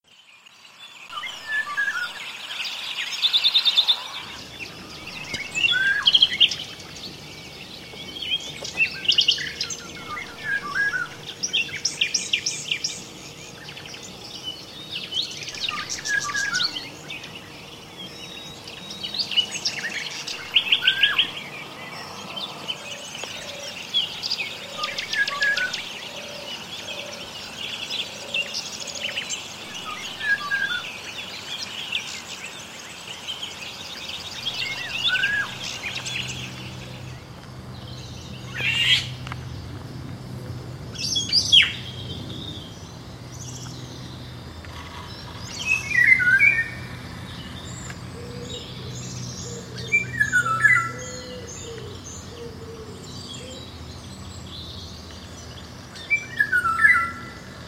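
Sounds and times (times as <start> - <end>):
nightingales singing: 0.1 - 39.8, 40.9 - 57.6.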